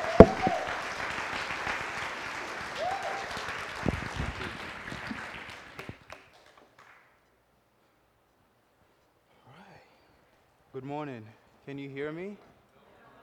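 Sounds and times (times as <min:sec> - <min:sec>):
sharp knock: 0:00.0 - 0:00.7
audience applauding a speaker on a church stage: 0:00.0 - 0:07.1
speech: 0:10.9 - 0:12.5.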